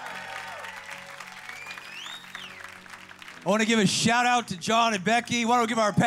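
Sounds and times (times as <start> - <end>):
faint whoops and cheers: 0.0 - 2.8
audience applause for the church: 0.0 - 4.3
speech: 3.4 - 6.0.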